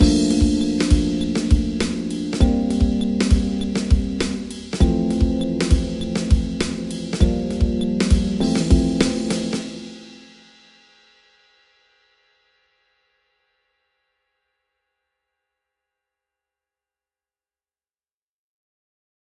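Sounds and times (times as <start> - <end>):
groove without bass: 0.0 - 10.3.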